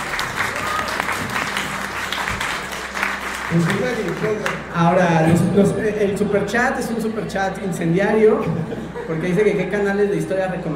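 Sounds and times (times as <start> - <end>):
applause: 0.0 - 4.8
speech: 3.5 - 10.7
laughter: 8.3 - 9.7.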